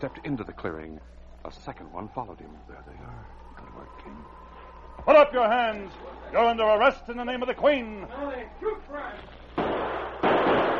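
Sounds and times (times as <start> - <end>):
speech: 0.0 - 4.4, 5.0 - 9.4
gunfire from outlaws and a sergeant in a shootout: 9.5 - 10.7.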